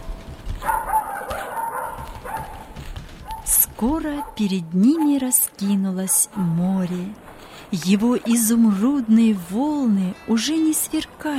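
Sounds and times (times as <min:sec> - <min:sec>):
puppy barking happily: 0:00.6 - 0:03.5, 0:04.1 - 0:06.6
speech: 0:03.8 - 0:11.3.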